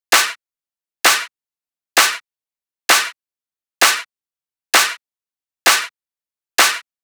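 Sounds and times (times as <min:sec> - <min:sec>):
techno clap loop at 130: 0:00.1 - 0:00.4, 0:01.1 - 0:01.3, 0:02.0 - 0:02.2, 0:02.9 - 0:03.2, 0:03.8 - 0:04.1, 0:04.8 - 0:05.0, 0:05.7 - 0:05.9, 0:06.6 - 0:06.8.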